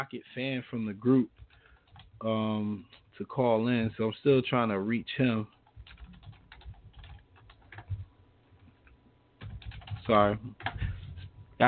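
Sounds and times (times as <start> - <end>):
speech: 0.0 - 1.4, 2.2 - 5.6, 10.1 - 10.8
typing on a computer keyboard: 1.3 - 2.2, 5.5 - 8.1, 8.8 - 11.3.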